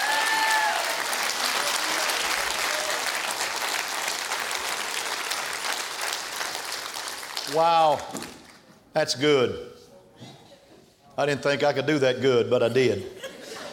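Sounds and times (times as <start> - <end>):
audience clapping hands: 0.0 - 8.7
speech: 7.5 - 8.3, 9.0 - 9.7, 11.2 - 13.2
laughter: 12.9 - 13.7.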